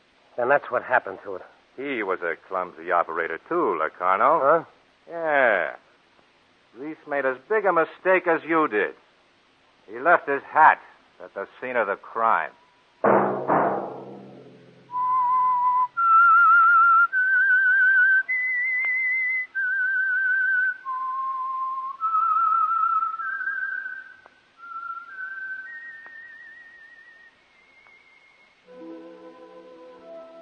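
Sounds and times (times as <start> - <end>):
speech: 0.4 - 5.8, 6.8 - 9.0, 9.9 - 13.4
low thud: 13.0 - 15.1
whistled program theme signal: 14.9 - 30.3.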